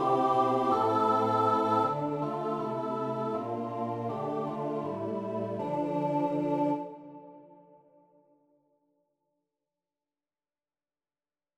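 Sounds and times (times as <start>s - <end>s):
MIDI music: 0.0s - 7.2s.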